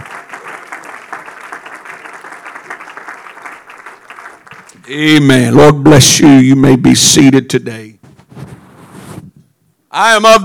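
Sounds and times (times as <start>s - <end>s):
audience clapping hands in praise: 0.0s - 4.9s
speech: 4.9s - 8.0s, 10.0s - 10.4s.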